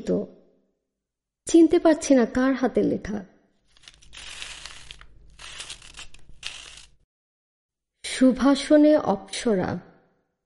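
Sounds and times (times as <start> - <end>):
speech: 0.0 - 0.4, 1.5 - 3.3, 8.2 - 9.9
paper letter crinkling and rustling: 3.6 - 7.0.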